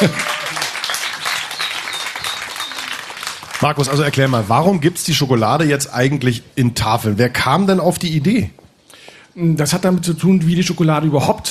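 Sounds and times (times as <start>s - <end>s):
speech: 0.0s - 0.3s, 3.6s - 8.6s, 9.4s - 11.4s
audience applause: 0.0s - 4.6s.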